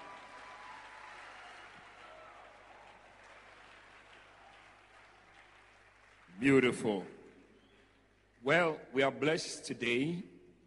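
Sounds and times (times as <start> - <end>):
audience applause: 0.0 - 8.4
speech: 6.4 - 7.2, 8.5 - 10.3.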